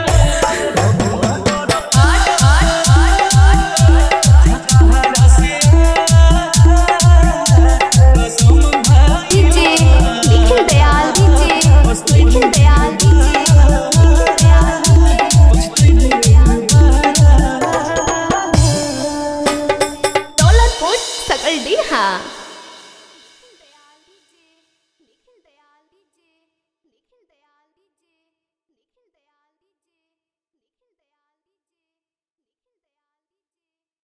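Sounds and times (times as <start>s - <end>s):
hard Jhan Jhan bass mix: 0.1s - 17.5s, 18.5s - 22.9s.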